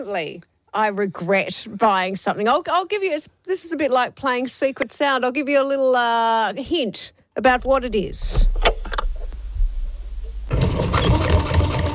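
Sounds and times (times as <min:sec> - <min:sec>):
speech: 0:00.0 - 0:08.7
sewing machine whirring: 0:10.5 - 0:11.9.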